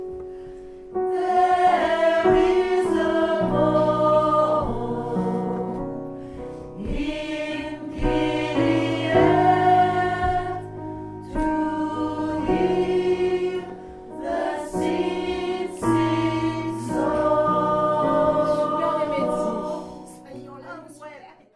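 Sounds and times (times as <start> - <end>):
mezzo-soprano singing a gospel refrain: 0.9 - 20.9.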